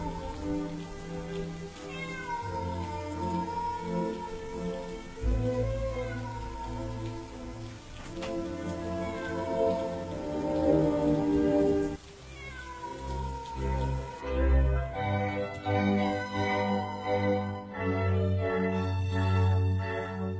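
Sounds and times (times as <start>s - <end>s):
stray cat meowing: 0.0s - 14.2s
rain falling: 0.0s - 20.3s.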